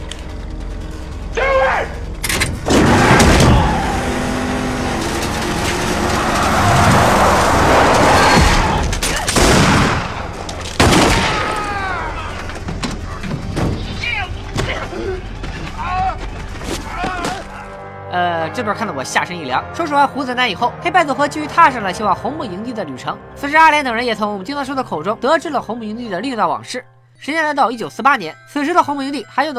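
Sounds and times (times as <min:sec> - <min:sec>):
car engine starting: 0:02.0 - 0:22.8
speech: 0:18.6 - 0:29.5.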